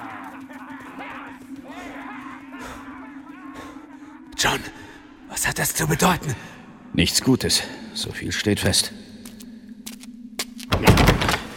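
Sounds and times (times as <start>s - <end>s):
speech: 4.4s - 4.8s, 5.5s - 9.0s
door being shut and blocked with heavy thunk: 10.7s - 11.5s.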